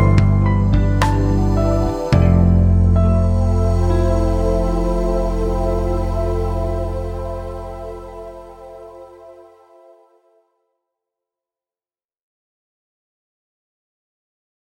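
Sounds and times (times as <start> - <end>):
piano piece: 0.0 - 10.3.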